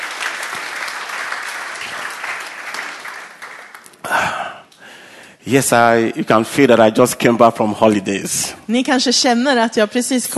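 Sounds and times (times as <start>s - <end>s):
crowd applauding: 0.0s - 4.2s
speech: 5.5s - 10.3s.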